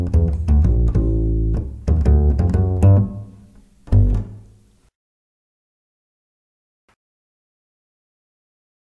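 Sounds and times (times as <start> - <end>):
double bass riffs in D: 0.0 - 4.6.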